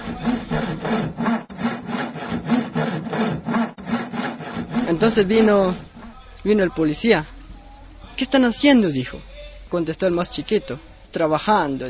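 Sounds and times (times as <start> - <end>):
sawing through padlocks: 0.0 - 6.2
speech: 4.9 - 7.3, 8.2 - 11.8.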